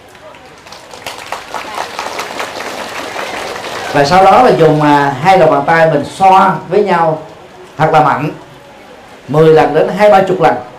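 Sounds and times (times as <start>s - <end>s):
audience applause: 0.0s - 4.9s
speech: 3.9s - 8.4s, 9.3s - 10.7s.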